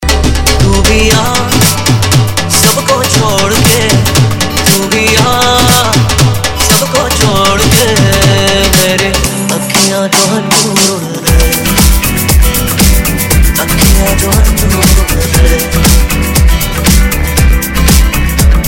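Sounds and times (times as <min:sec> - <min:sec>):
bhangra DJ music: 0:00.0 - 0:18.6.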